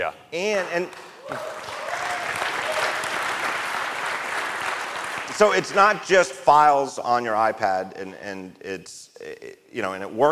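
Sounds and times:
speech: 0:00.0 - 0:01.7, 0:05.4 - 0:10.3
audience applause: 0:01.2 - 0:06.0.

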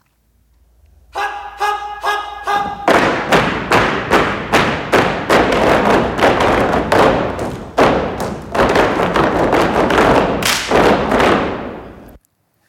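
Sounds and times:
stomping of hoof-like shoes on stage: 0:02.5 - 0:12.2.

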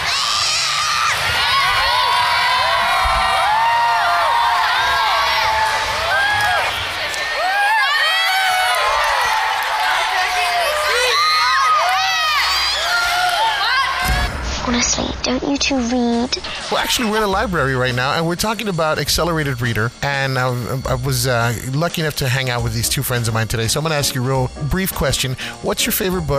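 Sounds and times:
children shouting and cheering at a library reading kick-off: 0:00.0 - 0:14.4
speech: 0:15.7 - 0:26.3.

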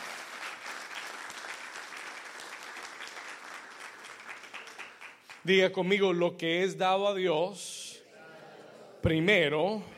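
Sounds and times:
loud audience applause: 0:00.0 - 0:05.5
speech: 0:05.4 - 0:07.8, 0:09.0 - 0:09.9.

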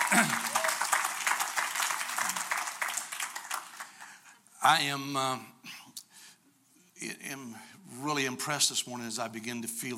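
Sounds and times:
audience hand clapping: 0:00.0 - 0:04.2
speech: 0:00.1 - 0:00.5, 0:04.7 - 0:05.8, 0:07.0 - 0:09.9.

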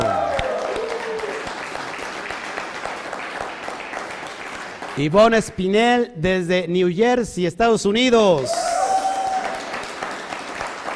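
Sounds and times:
voice cheering: 0:00.0 - 0:01.5, 0:08.4 - 0:09.7
audience applause: 0:00.0 - 0:05.0, 0:08.4 - 0:10.9
speech: 0:05.0 - 0:08.6.

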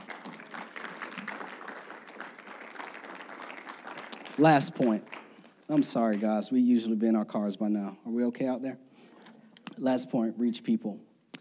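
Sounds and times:
audience applause: 0:00.0 - 0:06.5
speech: 0:04.4 - 0:08.9, 0:09.8 - 0:11.1.

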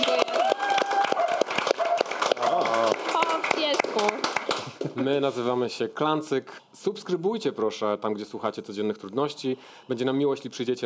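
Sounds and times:
scattered cheers and excited voices: 0:00.0 - 0:01.5
audience clapping: 0:00.0 - 0:05.2
speech: 0:05.0 - 0:10.8.

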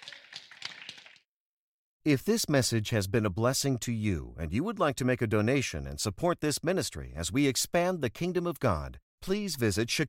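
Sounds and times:
audience clapping: 0:00.0 - 0:01.2
speech: 0:02.0 - 0:10.0.

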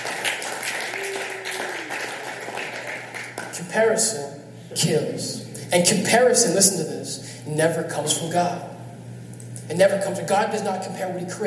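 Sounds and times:
audience clapping hands: 0:00.0 - 0:03.7
speech: 0:03.8 - 0:06.8, 0:07.6 - 0:08.7, 0:09.7 - 0:11.4.

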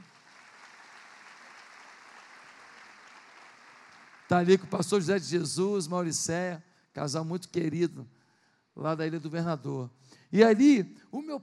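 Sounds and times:
audience applause: 0:00.0 - 0:04.7
speech: 0:04.3 - 0:08.2, 0:08.8 - 0:11.4.

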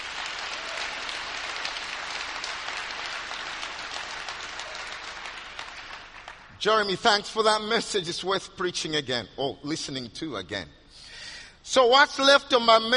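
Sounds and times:
audience applauding: 0:00.0 - 0:06.5
speech: 0:06.6 - 0:12.9.

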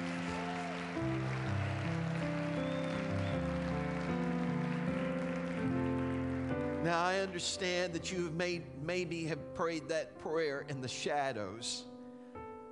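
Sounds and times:
audience hand clapping: 0:00.0 - 0:07.7
sustained keyboard chords: 0:00.0 - 0:12.6
speech: 0:06.8 - 0:11.9.

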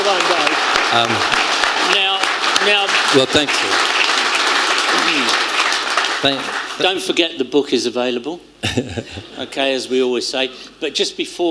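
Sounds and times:
audience round of applause: 0:00.0 - 0:06.9
speech: 0:00.9 - 0:01.4, 0:02.6 - 0:04.0, 0:06.2 - 0:11.4
laughter: 0:08.6 - 0:09.4.

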